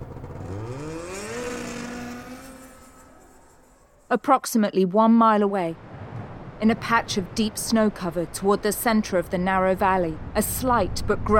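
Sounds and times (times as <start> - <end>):
snowmobile engine revving and driving away: 0.0 - 4.1
speech: 4.1 - 5.8, 6.6 - 11.3.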